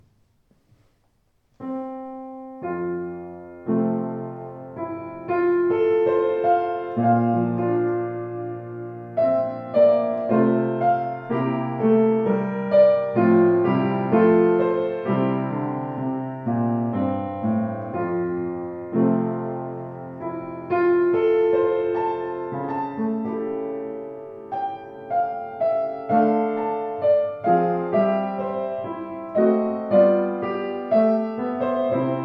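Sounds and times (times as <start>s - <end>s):
Sauter piano: 0.0s - 32.2s.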